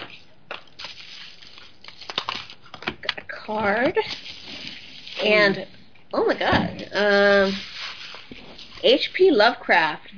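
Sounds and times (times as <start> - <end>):
package being opened with tearing and crinkling packaging: 0.0 - 3.2, 4.0 - 5.6, 7.1 - 8.9
speech: 3.5 - 4.3, 5.2 - 7.7, 8.8 - 10.1.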